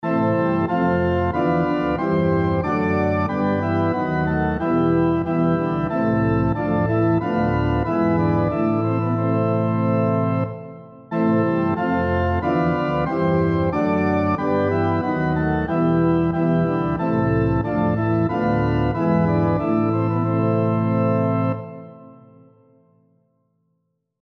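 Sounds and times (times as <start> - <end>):
SATB four-part harmony on piano: 0.0 - 22.9.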